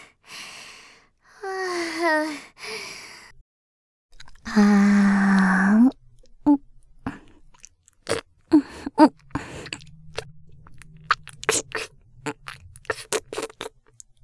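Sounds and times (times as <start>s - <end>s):
ASMR mouth sucking sounds: 4.2s - 14.2s.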